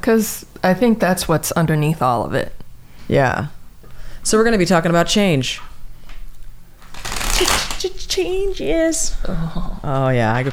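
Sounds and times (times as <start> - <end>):
speech: 0.0 - 3.6, 4.2 - 5.7, 8.2 - 10.5
tarot cards shuffled during a card reading: 6.8 - 7.9.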